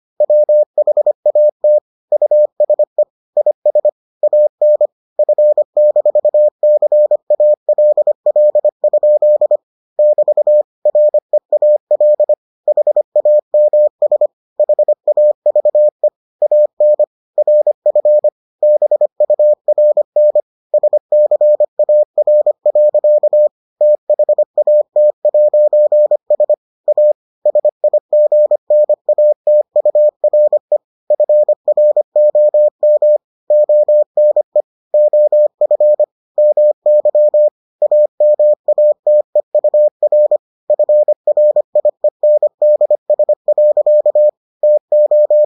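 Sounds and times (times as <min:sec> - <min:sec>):
morse code beeps: 0:00.2 - 0:45.4.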